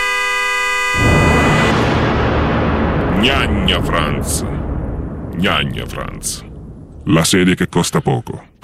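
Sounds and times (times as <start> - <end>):
car horn blaring: 0.0 - 1.8
harsh rushing burst of noise: 1.0 - 7.4
speech: 3.2 - 4.6, 5.4 - 8.5.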